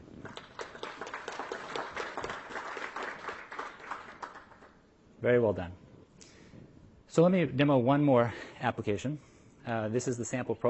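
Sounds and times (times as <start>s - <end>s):
audience applause: 0.2s - 4.7s
speech: 5.2s - 5.8s, 7.2s - 10.6s.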